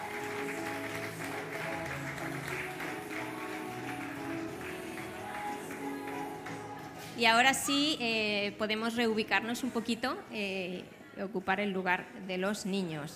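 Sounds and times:
audience applause: 0.0s - 7.0s
speech: 7.2s - 13.1s.

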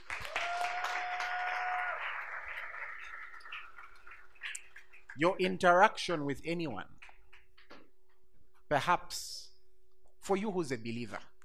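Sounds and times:
audience clapping: 0.0s - 5.6s
speech: 5.2s - 6.9s, 8.7s - 9.4s, 10.3s - 11.3s.

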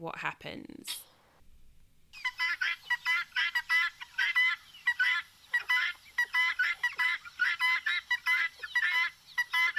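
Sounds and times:
speech: 0.0s - 1.1s
guinea fowl calling played back from a YouTube video: 2.1s - 9.7s.

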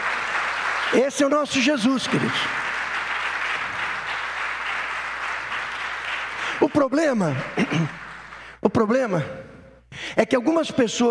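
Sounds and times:
audience applause: 0.0s - 8.6s
speech: 0.9s - 2.6s, 6.8s - 8.0s, 8.7s - 11.0s.

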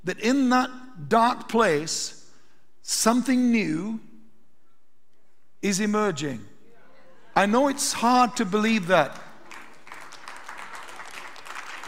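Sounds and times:
speech: 0.0s - 2.2s, 2.9s - 4.1s, 5.6s - 6.5s, 7.4s - 9.2s
audience clapping: 8.9s - 11.8s.

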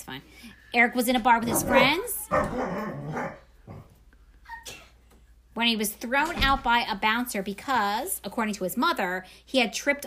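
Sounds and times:
speech: 0.0s - 3.8s, 5.6s - 10.0s
dog barking: 1.5s - 3.8s.

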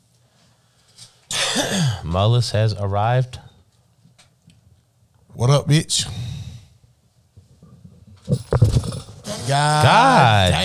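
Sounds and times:
speech: 1.6s - 3.4s, 5.4s - 6.2s, 9.5s - 10.6s
microphone dropped, clattering: 7.4s - 10.0s
loud shout: 9.3s - 10.6s.

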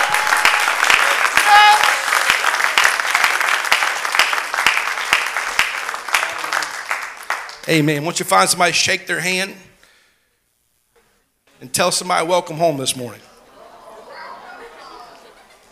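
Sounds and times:
congregation clapping in praise at a morning church service: 0.0s - 8.2s
speech: 7.7s - 9.7s, 11.6s - 13.3s
laughter: 13.3s - 15.7s.

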